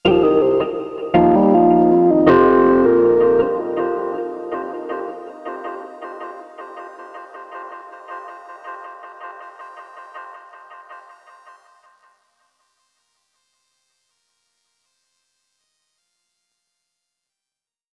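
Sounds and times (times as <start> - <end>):
overlay tone: 0.0 - 6.9.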